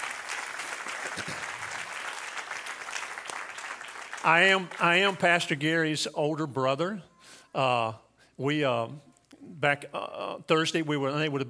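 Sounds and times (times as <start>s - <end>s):
audience clapping: 0.0s - 5.6s
speech: 4.2s - 11.4s.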